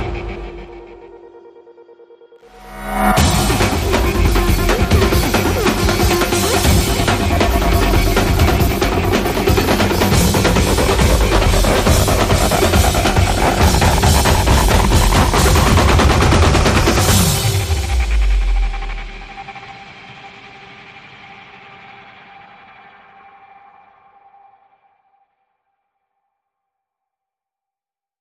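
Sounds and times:
full driving drum beat: 3.2s - 19.4s.

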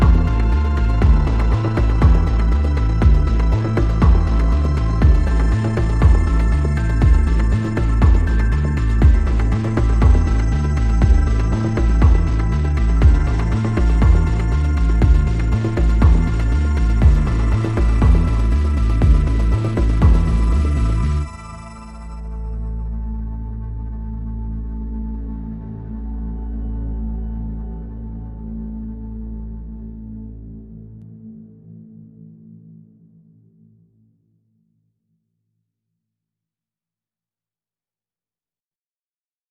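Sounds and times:
drums: 0.0s - 21.2s
bass: 0.0s - 32.6s
pads: 0.0s - 32.8s.

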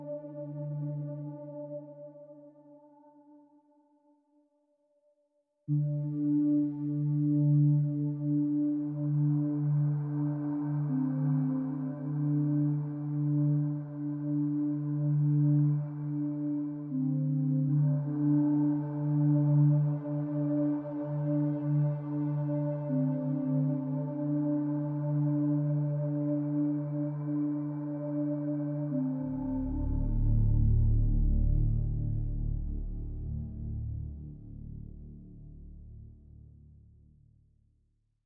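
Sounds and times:
synth pads: 5.7s - 36.1s.

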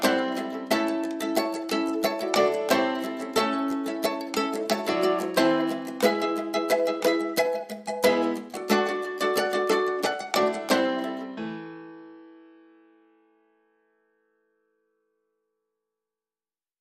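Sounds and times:
banjo playing blues: 0.0s - 11.6s
ukulele: 0.0s - 12.1s
piano: 0.0s - 15.2s.

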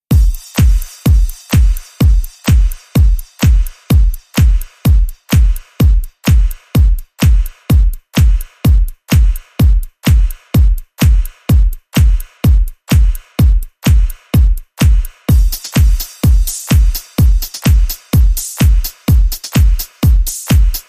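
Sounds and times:
music beat: 0.0s - 20.8s.

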